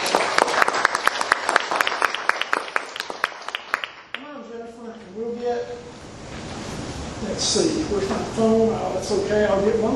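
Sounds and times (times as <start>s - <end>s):
audience applause: 0.0s - 4.2s
speech: 7.4s - 9.9s.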